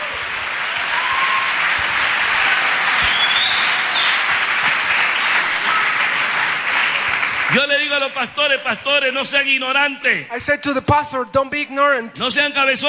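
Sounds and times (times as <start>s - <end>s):
church audience applauding: 0.0s - 8.6s
speech: 7.5s - 12.8s.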